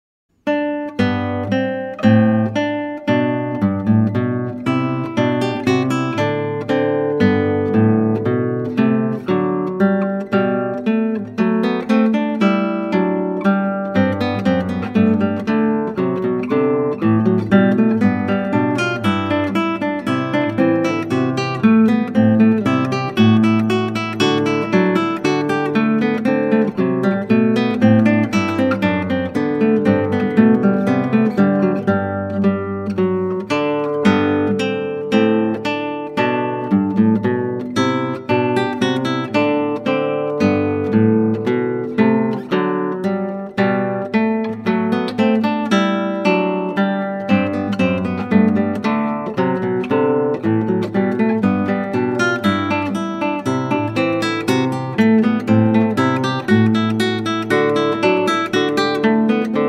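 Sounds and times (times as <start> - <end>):
classical guitar: 0.3 - 59.6.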